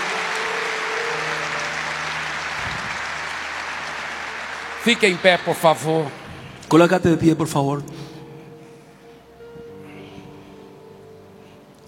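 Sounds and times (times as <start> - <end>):
audience applause: 0.0 - 6.7
speech: 4.8 - 7.9.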